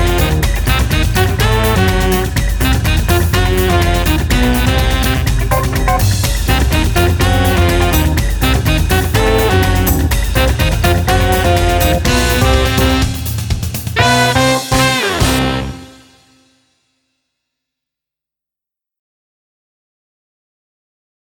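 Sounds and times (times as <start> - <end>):
saxophone: 0.0 - 16.5.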